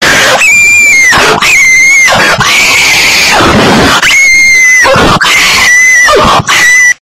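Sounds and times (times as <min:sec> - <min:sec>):
person screaming: 0:00.0 - 0:07.0.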